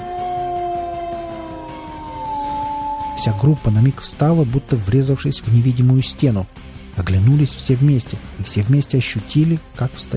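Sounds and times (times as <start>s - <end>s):
wild nightmarish howl: 0.0s - 4.1s
speech: 3.2s - 10.1s.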